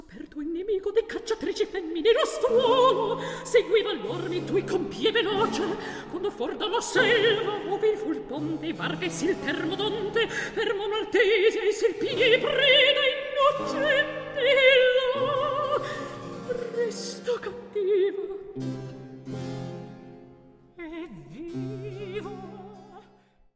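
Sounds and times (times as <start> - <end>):
recitative singing: 0.0 - 18.8.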